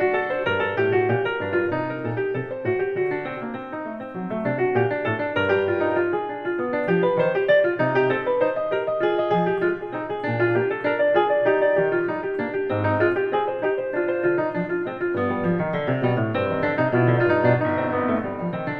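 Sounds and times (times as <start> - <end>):
baroque partita allemande on piano: 0.0 - 18.7.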